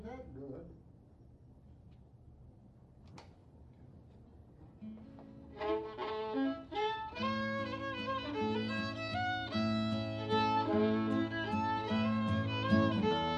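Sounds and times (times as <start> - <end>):
waltz music: 5.7 - 13.3.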